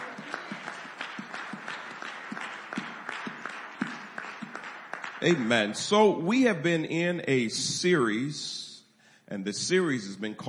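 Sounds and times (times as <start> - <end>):
church congregation clapping during a morning service: 0.0 - 6.2
speech: 5.2 - 8.6, 9.3 - 10.4.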